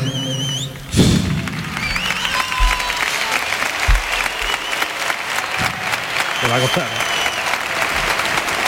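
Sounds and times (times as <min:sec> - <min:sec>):
whistles: 0:00.0 - 0:03.1, 0:03.9 - 0:05.1, 0:06.0 - 0:07.7
large stadium crowd applauding: 0:00.0 - 0:08.6
dull thumps: 0:00.9 - 0:03.0.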